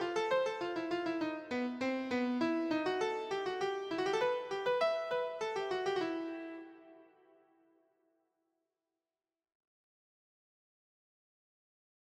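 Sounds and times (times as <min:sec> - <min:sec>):
keyboard piece: 0:00.0 - 0:07.3.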